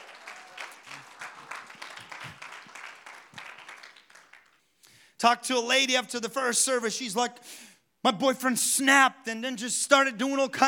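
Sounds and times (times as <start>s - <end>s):
audience clapping: 0.0s - 4.7s
speech: 5.2s - 10.6s.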